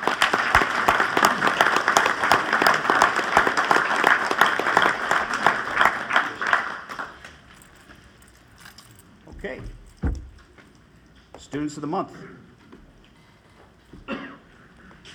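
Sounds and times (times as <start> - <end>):
audience applause: 0.0 - 7.6
speech: 11.5 - 12.4.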